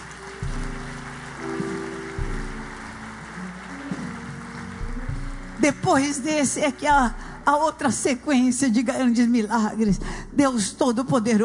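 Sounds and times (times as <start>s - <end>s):
audience applause: 0.0s - 6.2s
speech: 5.6s - 11.4s.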